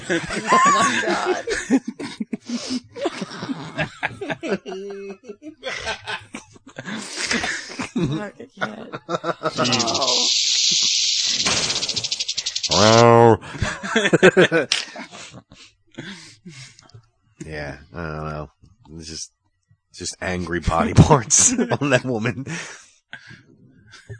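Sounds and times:
people talking excitedly: 0:00.0 - 0:01.8, 0:03.8 - 0:06.1, 0:07.0 - 0:13.4, 0:20.0 - 0:22.5
snickering laughter: 0:00.0 - 0:10.3, 0:12.7 - 0:16.3, 0:20.2 - 0:22.7
speech: 0:00.1 - 0:02.8, 0:08.0 - 0:11.7, 0:19.0 - 0:23.4
loud breathy hiss: 0:09.6 - 0:12.8.

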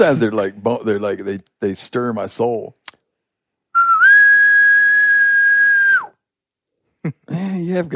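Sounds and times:
speech: 0:00.0 - 0:02.8, 0:07.0 - 0:07.9
person imitating an elk bugle with a sustained whistle: 0:03.8 - 0:06.2.

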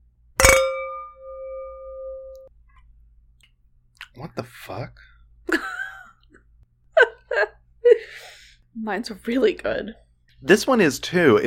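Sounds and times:
wine glasses clinking in a toast: 0:00.4 - 0:02.4
speech: 0:04.2 - 0:05.7, 0:08.8 - 0:11.4.

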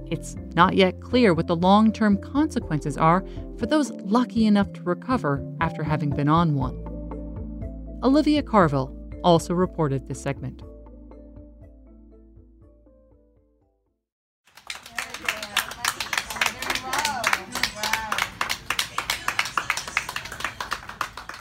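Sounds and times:
speech: 0:00.1 - 0:06.9, 0:08.0 - 0:10.7
healthcare workers clapping in hospital hallway at Somerset Hospital: 0:14.4 - 0:21.3.

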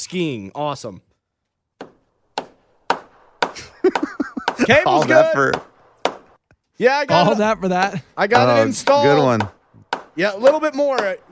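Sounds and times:
speech: 0:00.0 - 0:01.1, 0:04.7 - 0:05.7, 0:06.8 - 0:09.6, 0:10.2 - 0:11.3
hammering sound effect: 0:01.8 - 0:06.4, 0:08.4 - 0:11.3
laughter: 0:03.5 - 0:05.6, 0:06.8 - 0:09.5.

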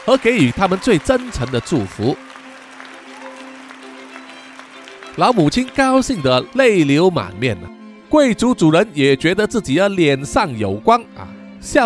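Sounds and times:
speech: 0:00.0 - 0:02.2, 0:05.2 - 0:11.8
crowd clapping at a celebration for a newly matched couple: 0:00.0 - 0:07.0.

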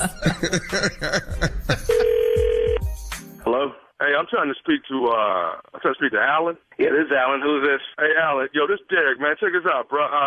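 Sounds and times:
speech: 0:00.0 - 0:01.4, 0:04.3 - 0:10.2
laughter: 0:00.0 - 0:02.2
mid-pitched electronic phone tone of a ringing call: 0:01.9 - 0:02.8.

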